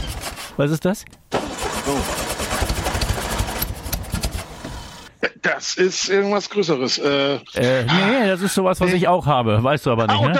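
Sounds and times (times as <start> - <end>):
VW Beetle engine cranking without starting: 0.0 - 0.6, 1.3 - 5.1
speech: 0.6 - 1.3, 1.9 - 2.3, 5.4 - 10.3.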